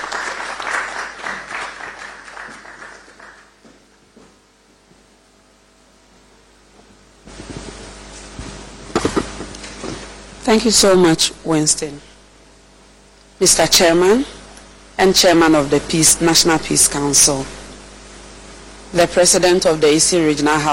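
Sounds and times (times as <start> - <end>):
audience applause: 0.0 - 3.6
speech: 10.5 - 12.1, 13.4 - 14.4, 15.0 - 17.6, 18.9 - 20.7.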